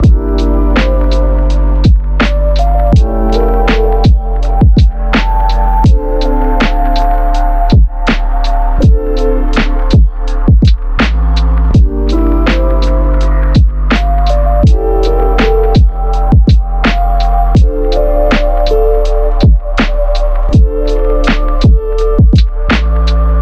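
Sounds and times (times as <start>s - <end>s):
music beat: 0.0s - 23.3s.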